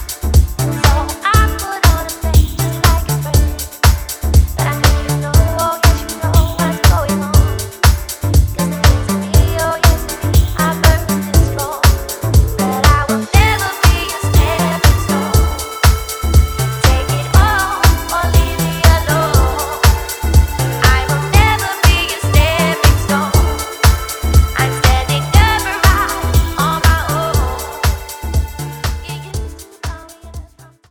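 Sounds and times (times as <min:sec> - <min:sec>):
vocals: 0:00.0 - 0:30.8.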